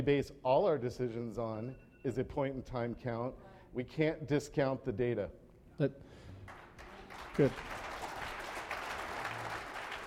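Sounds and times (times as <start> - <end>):
speech: 0.0 - 6.3, 7.3 - 7.8
faint audience applause at a city council candidate forum: 6.4 - 10.0.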